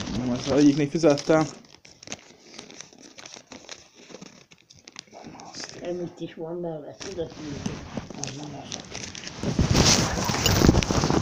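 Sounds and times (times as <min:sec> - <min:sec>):
paper crinkling and rustling while someone searches for a receipt: 0:00.0 - 0:06.1, 0:07.0 - 0:11.1
speech: 0:00.3 - 0:01.6, 0:05.9 - 0:10.3.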